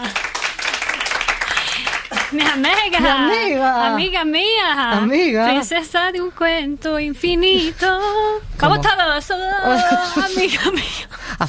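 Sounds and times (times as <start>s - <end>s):
applause: 0.0s - 3.2s
speech: 2.3s - 11.4s.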